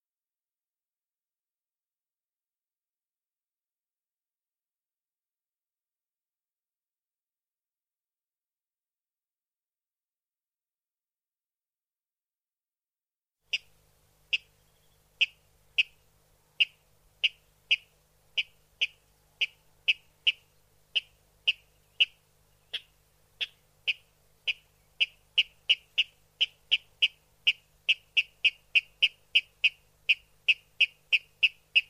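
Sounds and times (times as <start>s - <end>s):
Water rail ticking notes: 13.5s - 16.0s, 16.6s - 31.8s.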